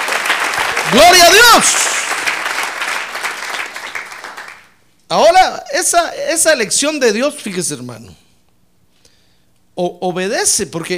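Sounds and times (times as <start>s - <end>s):
audience applause: 0.0s - 4.7s
speech: 0.9s - 2.0s, 5.1s - 8.2s, 9.8s - 10.9s.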